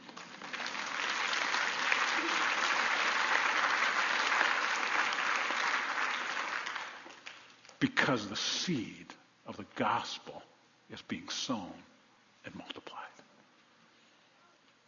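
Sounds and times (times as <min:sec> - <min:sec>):
audience applause: 0:00.0 - 0:07.5
speech: 0:07.8 - 0:12.8.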